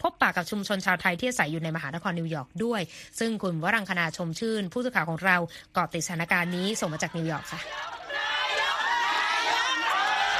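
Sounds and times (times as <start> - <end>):
speech: 0.3 - 8.0
crowd of Thai people cheering a welcome in a Thai Buddhist temple in Queens: 6.3 - 10.3
whoops: 7.6 - 10.3.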